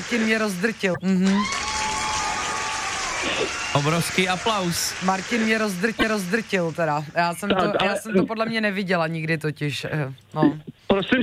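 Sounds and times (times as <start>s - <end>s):
huge applause: 0.0s - 7.4s
speech: 0.1s - 1.6s, 3.2s - 11.2s.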